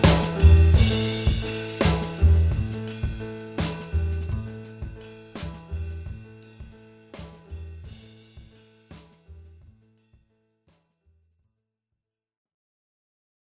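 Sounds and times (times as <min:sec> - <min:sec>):
improvised backing music: 0:00.0 - 0:09.5.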